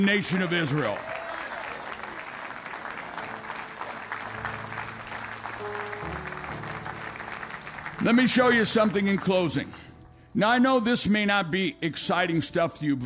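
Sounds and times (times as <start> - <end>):
speech: 0.0 - 1.2, 8.0 - 13.0
large audience applauding: 0.0 - 9.9
organ or keyboard chords: 2.4 - 13.0.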